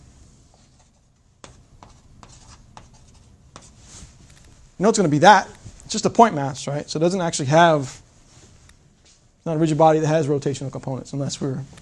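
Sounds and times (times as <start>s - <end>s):
writing on a board during a physics lecture: 0.5s - 4.0s
speech: 4.8s - 8.0s, 9.4s - 11.8s.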